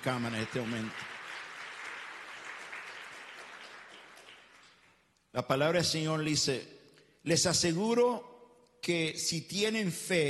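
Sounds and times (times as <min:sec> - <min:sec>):
speech: 0:00.0 - 0:01.1, 0:05.3 - 0:10.2
applause: 0:00.0 - 0:05.2.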